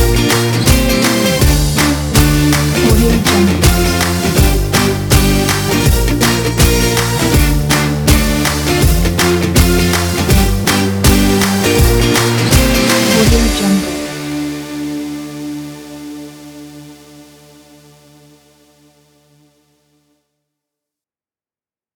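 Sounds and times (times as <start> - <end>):
indie rock guitar: 0.0 - 16.0.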